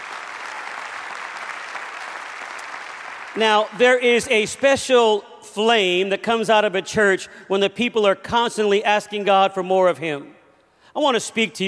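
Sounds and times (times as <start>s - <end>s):
audience clapping hands: 0.0s - 3.8s
speech: 3.4s - 11.6s.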